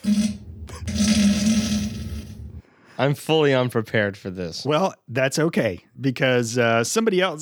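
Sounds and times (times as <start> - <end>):
fart: 0.0 - 2.6
speech: 3.0 - 7.4.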